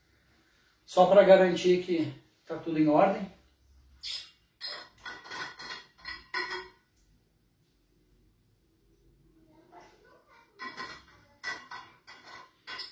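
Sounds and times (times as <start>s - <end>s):
speech: 0.9s - 3.4s, 4.0s - 4.3s
glass or bottle clinking while taking a sip of water: 4.6s - 6.8s, 10.6s - 12.8s.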